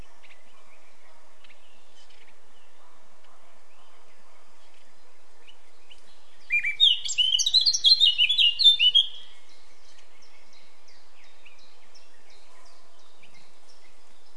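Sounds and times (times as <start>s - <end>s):
Eurasian blackcap warbling, Sylvia atricapilla: 6.5s - 9.3s.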